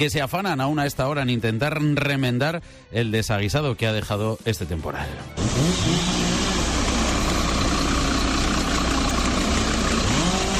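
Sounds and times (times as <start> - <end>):
speech: 0.0 - 6.5
chainsaws cutting fallen trees at night: 5.4 - 10.5.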